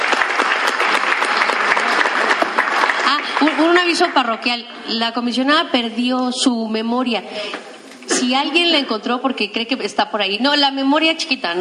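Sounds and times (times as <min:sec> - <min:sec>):
audience applause: 0:00.0 - 0:04.3
speech: 0:03.6 - 0:11.5.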